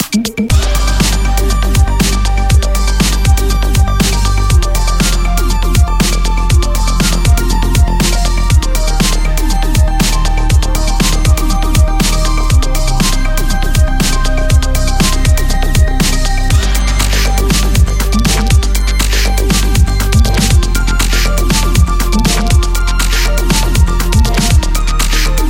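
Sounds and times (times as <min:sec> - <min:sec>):
electro party music: 0:00.0 - 0:25.4.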